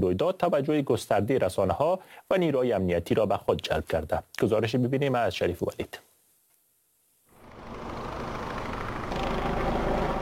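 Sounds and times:
speech: 0.0s - 6.1s
helicopter rotors droning overhead: 7.4s - 10.2s.

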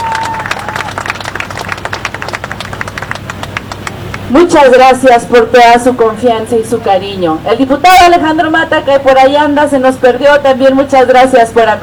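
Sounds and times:
audience applause: 0.0s - 4.2s
speech: 4.3s - 11.8s.

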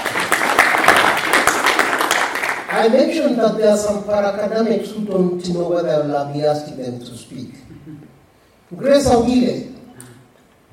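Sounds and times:
audience clapping after a talk on data and political economy: 0.0s - 3.0s
speech: 2.8s - 9.7s.

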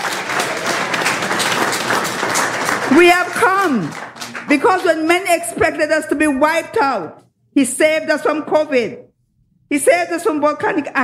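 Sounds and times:
church congregation clapping hands in praise during a worship service: 0.0s - 5.5s
speech: 2.9s - 9.1s, 9.7s - 11.0s.

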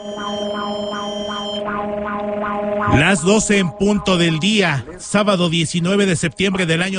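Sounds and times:
seismic alert siren during Mexico's national earthquake drill: 0.0s - 5.6s
speech: 0.0s - 6.9s.

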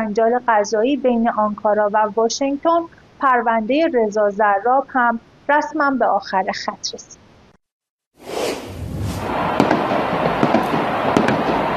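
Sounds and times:
speech: 0.1s - 7.2s
fireworks exploding at street celebration: 8.3s - 11.7s.

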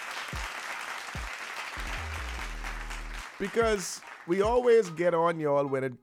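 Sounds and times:
crowd round of applause: 0.0s - 4.5s
deep bass thumps: 1.8s - 3.2s
speech: 3.4s - 6.0s.

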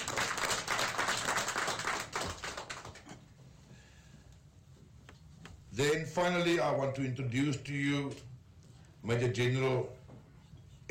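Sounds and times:
crowd clapping: 0.0s - 3.1s
speech: 5.8s - 8.3s, 9.0s - 10.0s.

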